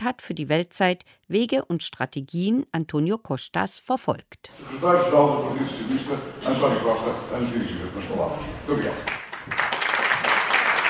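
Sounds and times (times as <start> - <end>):
speech: 0.0 - 9.7
crowd applause for prime minister: 9.0 - 10.8.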